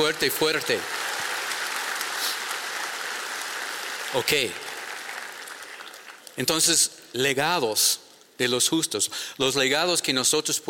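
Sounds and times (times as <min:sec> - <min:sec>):
speech: 0:00.0 - 0:01.1, 0:04.1 - 0:04.6, 0:06.4 - 0:10.6
audience applause: 0:00.0 - 0:06.4.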